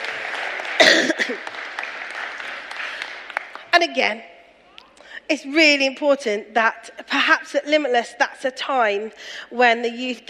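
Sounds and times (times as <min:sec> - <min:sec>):
audience applause for marshals: 0:00.0 - 0:03.7
speech: 0:03.8 - 0:04.3, 0:05.3 - 0:10.2.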